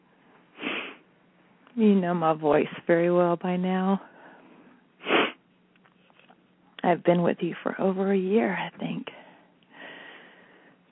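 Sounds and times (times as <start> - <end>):
speech: 1.8 - 4.1, 6.9 - 9.2
deep breath in: 9.7 - 10.8.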